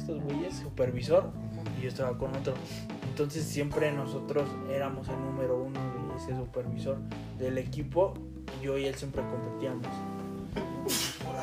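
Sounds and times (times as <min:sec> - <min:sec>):
speech: 0:00.1 - 0:11.4
sneeze: 0:10.8 - 0:11.3.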